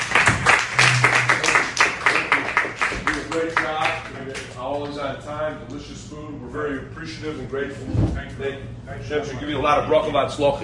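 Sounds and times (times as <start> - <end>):
audience applause: 0.0 - 4.2
speech: 4.8 - 10.6.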